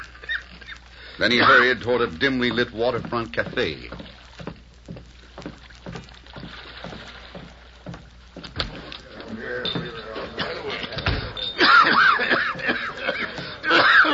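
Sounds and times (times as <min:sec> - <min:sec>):
speech: 0:01.2 - 0:04.2
dry hacking cough: 0:01.3 - 0:01.7, 0:11.6 - 0:14.1
laughter: 0:09.2 - 0:14.1.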